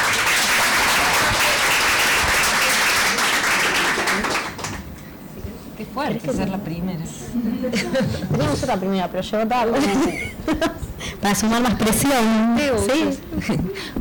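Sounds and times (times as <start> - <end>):
audience applause at a book presentation: 0.0 - 4.9
speech: 6.0 - 13.9
laughter: 7.3 - 8.9, 9.7 - 11.2, 13.0 - 13.9.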